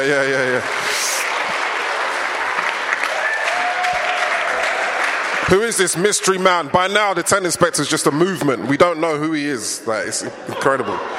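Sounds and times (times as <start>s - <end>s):
speech: 0.0s - 0.9s, 5.5s - 11.1s
audience applause: 0.0s - 6.7s.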